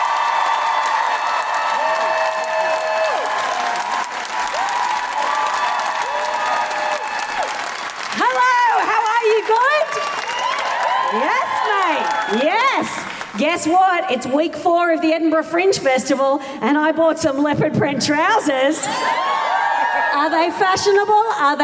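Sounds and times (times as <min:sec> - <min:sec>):
crowd whooping and cheering: 0:00.0 - 0:13.1, 0:18.8 - 0:21.0
live audience applause welcoming a comedian: 0:00.0 - 0:13.6
speech: 0:13.4 - 0:19.3, 0:20.1 - 0:21.6.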